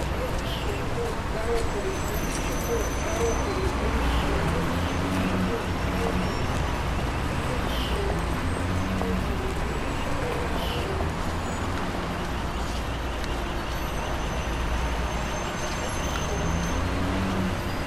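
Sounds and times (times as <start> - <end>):
murmuring voices on Gorokhovaya Street in Saint Petersburg: 0.0 - 13.1
passing traffic on Gorokhovaya Street in Saint Petersburg: 0.0 - 17.8.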